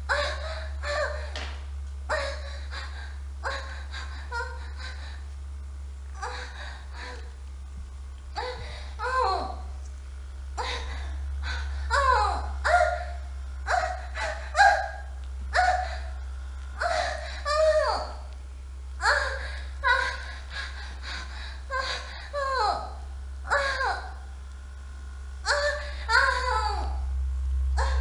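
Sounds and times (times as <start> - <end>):
young wife moaning wildly: 0.1 - 5.2, 6.2 - 7.4, 8.4 - 9.8, 10.6 - 16.2, 16.8 - 18.4, 19.0 - 24.3, 25.4 - 27.1, 27.8 - 28.0.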